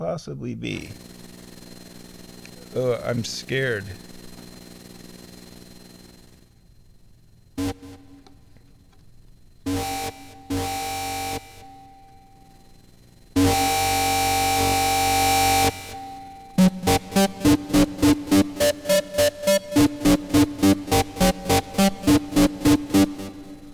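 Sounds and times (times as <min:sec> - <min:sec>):
speech: 0:00.0 - 0:01.2, 0:02.7 - 0:04.1
noisy distorted effects processor patch: 0:07.6 - 0:08.5, 0:09.7 - 0:12.0, 0:13.4 - 0:23.7.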